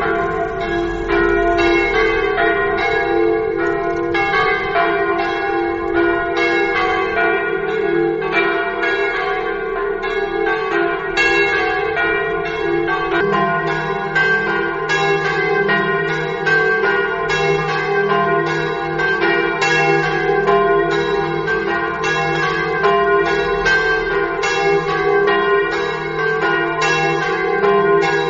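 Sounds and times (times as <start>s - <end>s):
bells: 0.0s - 28.2s.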